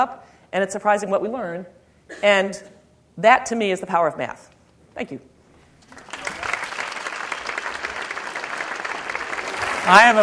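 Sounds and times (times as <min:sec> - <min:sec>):
speech: 0:00.0 - 0:05.3, 0:09.9 - 0:10.2
audience applause after a talk: 0:05.9 - 0:10.2.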